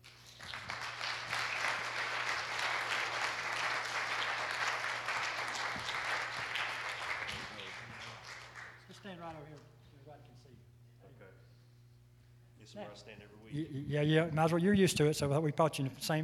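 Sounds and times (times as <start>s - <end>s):
audience applause: 0.0s - 8.9s
low electrical hum: 0.0s - 16.2s
speech: 12.6s - 16.2s.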